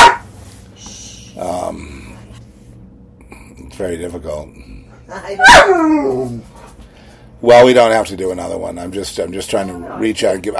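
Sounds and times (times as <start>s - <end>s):
dog barking: 0.0s - 0.3s, 5.3s - 6.0s
speech: 1.7s - 2.1s, 3.8s - 6.6s, 7.4s - 10.5s.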